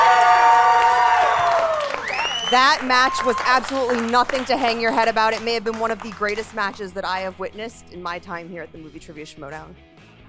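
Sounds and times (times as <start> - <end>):
crowd cheering and clapping: 0.0 - 6.8
speech: 2.5 - 9.9.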